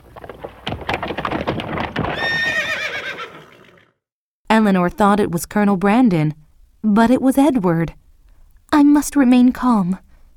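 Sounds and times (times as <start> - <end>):
horse hooves clopping: 0.0 - 3.9
horse neighing: 2.1 - 3.9
speech: 4.6 - 8.0, 8.7 - 10.0.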